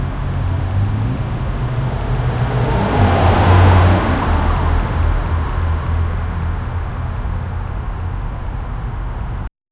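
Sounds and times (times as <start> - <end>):
1950s Chicago neighborhood ambience: 0.0 - 9.4.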